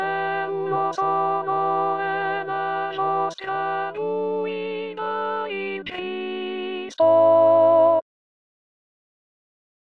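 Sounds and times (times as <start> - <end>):
contralto voices singing an alleluia: 0.0 - 7.8.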